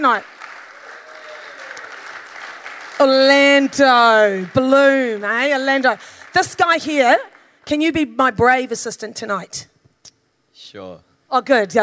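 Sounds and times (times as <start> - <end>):
speech: 0.0 - 0.3, 3.0 - 9.7, 10.6 - 11.8
audience applause: 0.0 - 7.3.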